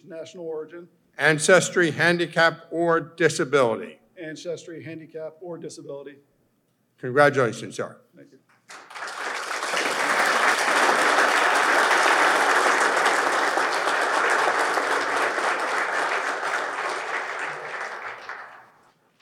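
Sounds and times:
speech: 0.0s - 6.3s, 7.0s - 8.9s
audience applause: 8.7s - 18.9s.

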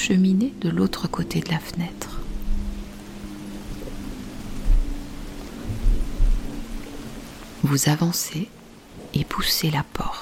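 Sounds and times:
speech: 0.0s - 2.1s, 7.6s - 10.2s
faint constant hum: 0.0s - 10.2s
steady rain: 0.0s - 10.2s
low rumbling thunder: 2.2s - 7.4s.

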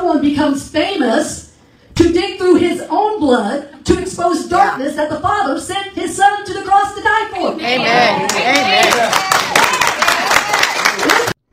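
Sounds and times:
speech: 0.1s - 1.4s, 2.0s - 9.3s
crowd applauding during a sermon: 8.1s - 11.5s.

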